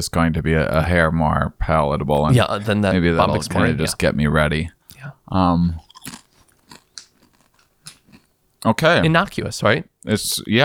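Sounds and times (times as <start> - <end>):
speech: 0.0 - 6.2, 8.6 - 10.6
cricket chip being bitten and chewed: 5.8 - 8.3.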